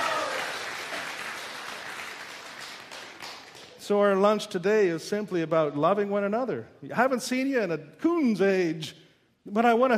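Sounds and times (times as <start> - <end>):
whoops: 0.0 - 0.7
crowd clapping: 0.0 - 3.9
speech: 3.9 - 9.9.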